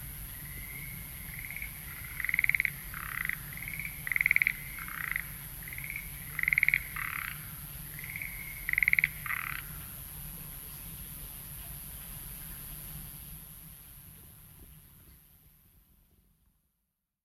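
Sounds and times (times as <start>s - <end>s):
frogs calling: 0.3s - 10.0s.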